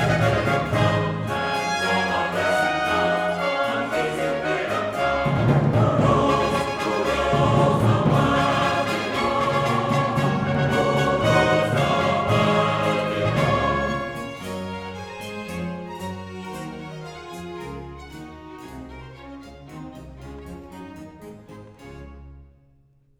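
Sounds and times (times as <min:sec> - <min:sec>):
choir singing: 0:00.0 - 0:15.3.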